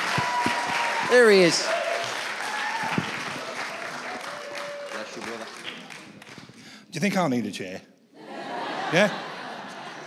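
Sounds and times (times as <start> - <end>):
crowd clapping: 0.0 - 6.7
speech: 1.1 - 1.8, 6.9 - 7.9, 8.9 - 9.3
laughter: 8.2 - 10.0.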